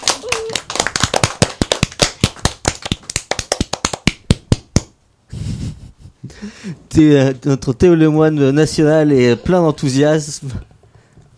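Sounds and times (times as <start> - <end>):
audience clapping in unison: 0.0 - 5.0
speech: 6.6 - 10.7.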